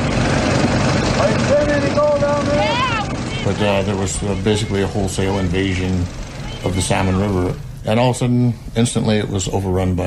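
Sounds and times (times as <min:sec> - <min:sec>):
suction dredge engine running on river: 0:00.0 - 0:09.5
speech: 0:03.4 - 0:10.0.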